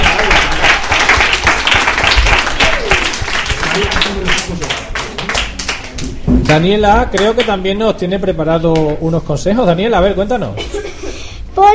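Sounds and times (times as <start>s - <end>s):
audience applause: 0.0s - 6.6s
speech: 6.5s - 10.8s, 11.6s - 11.7s.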